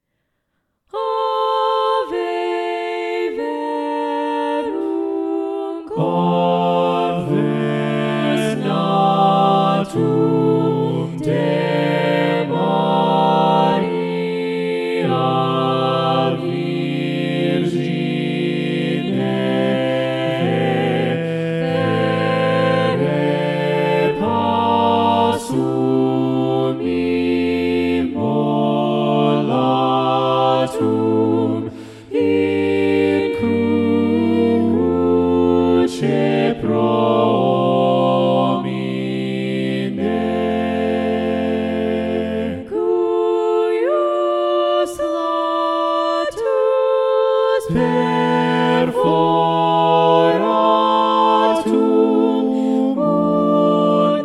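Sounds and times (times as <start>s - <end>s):
balanced SATB choir singing: 0.9s - 54.2s.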